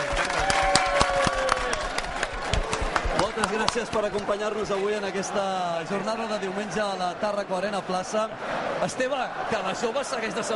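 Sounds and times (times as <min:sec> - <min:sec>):
audience applause: 0:00.0 - 0:04.8
speech: 0:03.7 - 0:10.5.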